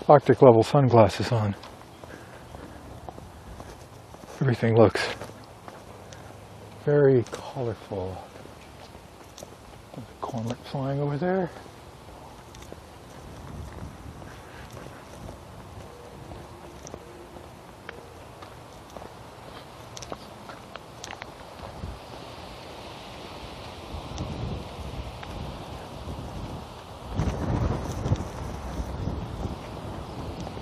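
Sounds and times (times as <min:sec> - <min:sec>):
speech: 0:00.1 - 0:01.7, 0:04.4 - 0:05.3, 0:06.8 - 0:08.3, 0:10.0 - 0:11.7
wind of about 10 knots buffeting the microphone: 0:01.4 - 0:04.9, 0:11.5 - 0:17.0, 0:21.5 - 0:22.3, 0:23.2 - 0:30.6.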